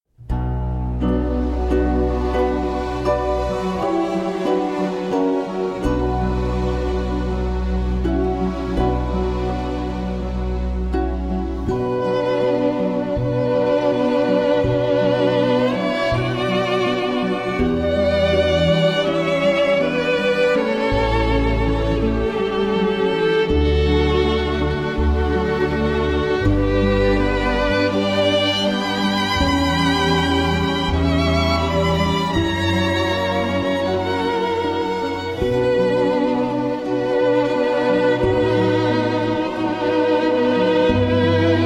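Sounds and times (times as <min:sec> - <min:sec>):
piano: 0:00.1 - 0:41.6
violins: 0:00.3 - 0:41.6.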